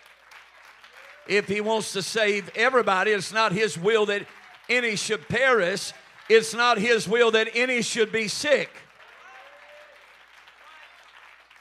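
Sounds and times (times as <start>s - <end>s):
audience applause: 0.0s - 11.5s
voices calling out: 1.3s - 8.7s
speech: 1.3s - 8.8s.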